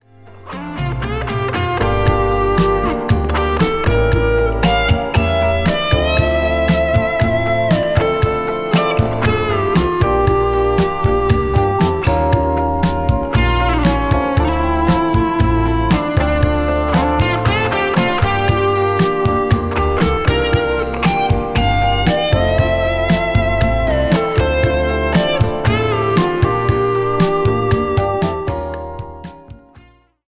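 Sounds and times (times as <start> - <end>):
guitar: 0.0 - 30.2.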